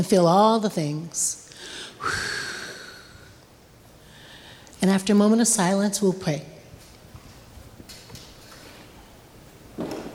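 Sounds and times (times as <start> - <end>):
speech: 0.0 - 2.5, 4.8 - 6.6
group taking a deep breath together during a prayer gathering: 1.5 - 3.3, 4.0 - 4.7.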